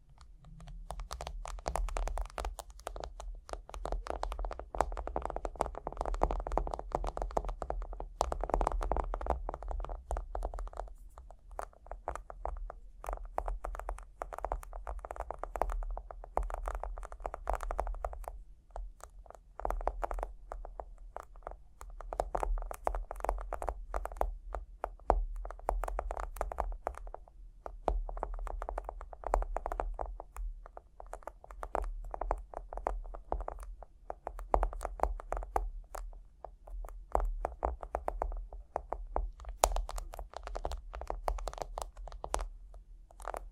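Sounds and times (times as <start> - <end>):
tapping and scratching: 0.0 - 43.5.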